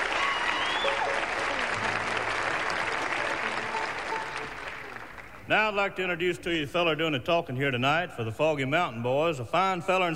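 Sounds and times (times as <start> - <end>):
audience applause: 0.0 - 5.5
speech: 5.5 - 10.1.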